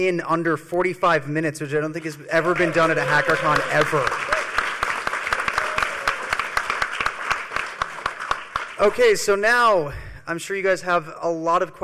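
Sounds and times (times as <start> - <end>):
speech: 0.0 - 4.4, 8.8 - 11.8
applause: 2.0 - 9.3.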